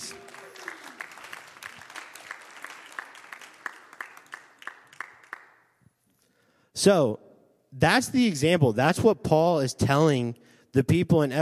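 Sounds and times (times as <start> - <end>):
audience applause: 0.0 - 5.6
speech: 6.8 - 11.4.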